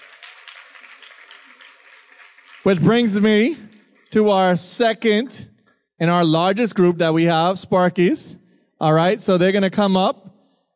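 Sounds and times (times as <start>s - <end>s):
crowd applauding: 0.0s - 4.1s
speech: 2.6s - 10.3s.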